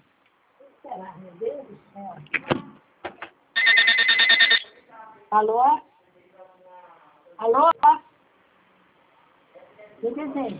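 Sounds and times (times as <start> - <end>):
speech: 0.8 - 2.9, 5.3 - 5.9, 7.4 - 8.0, 10.0 - 10.5
telephone ringing: 3.6 - 4.8.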